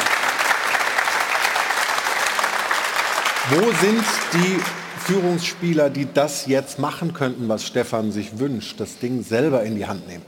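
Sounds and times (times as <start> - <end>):
audience applause: 0.0 - 6.0
speech: 3.5 - 10.2.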